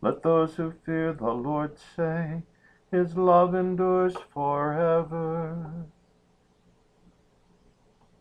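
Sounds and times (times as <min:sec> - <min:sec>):
psalm tone II chant: 0:00.0 - 0:05.9.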